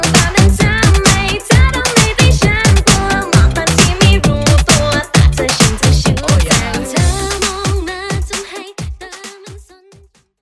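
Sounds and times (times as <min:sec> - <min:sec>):
funky drum machine beat: 0:00.0 - 0:10.1.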